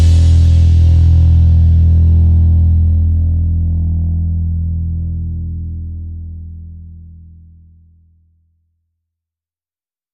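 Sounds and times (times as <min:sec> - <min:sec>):
drums: 0:00.0 - 0:03.5
bass: 0:00.0 - 0:08.8.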